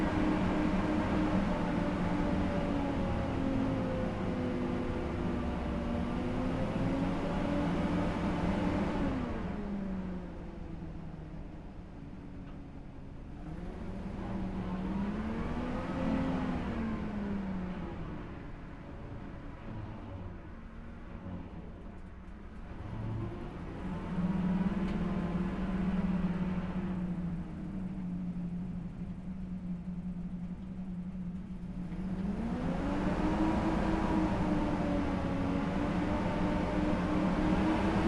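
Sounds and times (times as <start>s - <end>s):
BRDM-2 engine starting, driving fast, stopping and switching off, recorded onboard: 0.0s - 38.0s.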